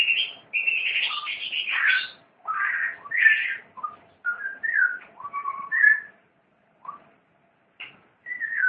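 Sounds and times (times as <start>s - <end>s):
long-tailed shrike singing: 0.0s - 6.2s, 8.2s - 8.6s.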